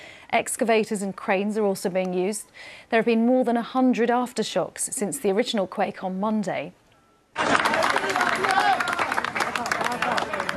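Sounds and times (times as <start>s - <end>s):
speech: 0.3s - 6.8s
applause at an earthquake rescue site in Cali: 7.4s - 10.5s.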